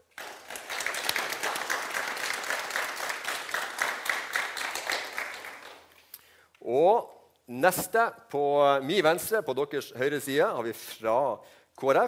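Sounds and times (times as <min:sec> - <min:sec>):
crowd applause: 0:00.0 - 0:05.9
speech: 0:06.7 - 0:12.0.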